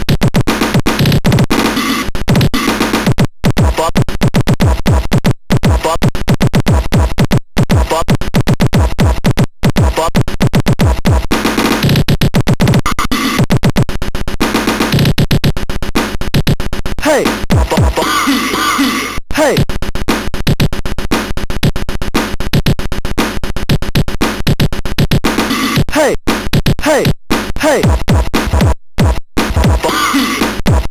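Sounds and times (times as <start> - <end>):
techno mix on MOS6581R3 sound chip: 0.0 - 30.8.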